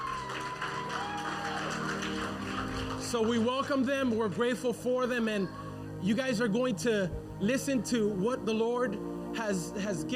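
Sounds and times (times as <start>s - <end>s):
audience applause: 0.0s - 4.6s
speech: 3.1s - 10.1s.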